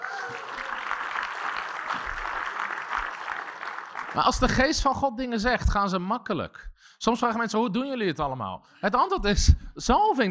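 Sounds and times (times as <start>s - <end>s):
audience applause: 0.0s - 4.6s
speech: 4.2s - 10.2s.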